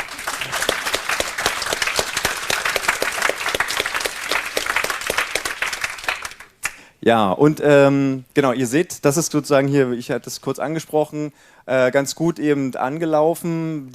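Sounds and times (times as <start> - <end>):
restrained applause from audience: 0.0 - 6.8
speech: 7.1 - 13.9.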